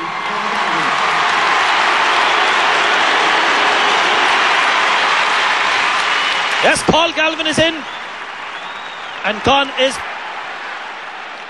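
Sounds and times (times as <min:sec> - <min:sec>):
large stadium crowd cheering a substitute: 0:00.0 - 0:11.4
speech: 0:06.6 - 0:08.0, 0:09.2 - 0:10.1.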